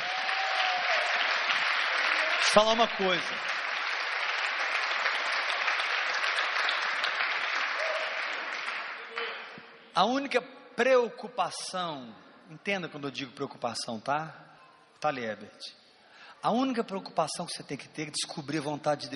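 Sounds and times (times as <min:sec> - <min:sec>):
audience applauding: 0:00.0 - 0:09.6
speech: 0:02.6 - 0:03.5, 0:10.0 - 0:14.4, 0:15.0 - 0:15.8, 0:16.4 - 0:19.1.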